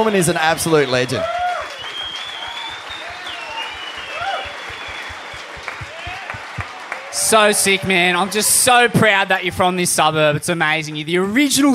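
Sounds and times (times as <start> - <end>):
speech: 0.0 - 1.4, 7.3 - 11.7
audience cheering: 0.0 - 9.4
audience applause: 0.1 - 9.1.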